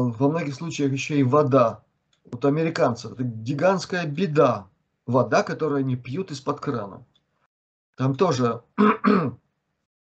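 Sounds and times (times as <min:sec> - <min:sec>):
speech: 0:00.0 - 0:07.1, 0:08.0 - 0:09.4
sneeze or cough: 0:08.8 - 0:09.4.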